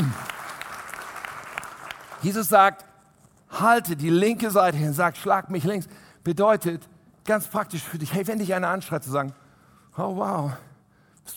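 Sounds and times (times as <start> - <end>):
audience applause: 0.0 - 2.3
speech: 2.2 - 2.9, 3.5 - 9.4, 10.0 - 11.3.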